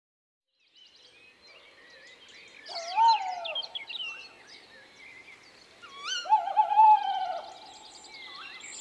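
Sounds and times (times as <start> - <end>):
tawny owl hooting: 2.7 - 3.6, 6.0 - 7.7.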